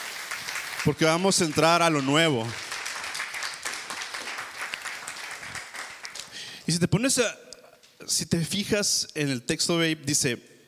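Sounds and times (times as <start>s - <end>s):
audience applause: 0.0s - 6.6s
speech: 0.8s - 2.6s, 6.7s - 10.5s.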